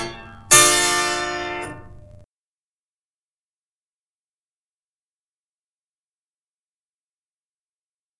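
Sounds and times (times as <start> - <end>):
harpsichord sonata in D minor: 0.0 - 2.2.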